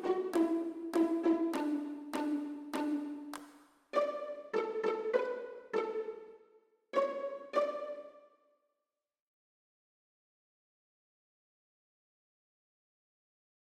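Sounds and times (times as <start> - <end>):
clapping: 0.0 - 3.7
pizzicato violin and viola: 0.0 - 8.4.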